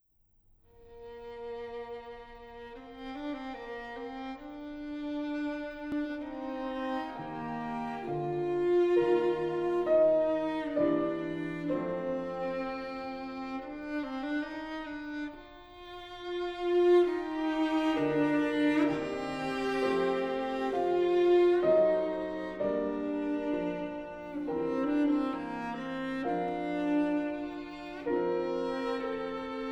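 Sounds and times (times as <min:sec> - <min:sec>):
solemn piano trio: 0:04.7 - 0:14.8, 0:16.4 - 0:29.6.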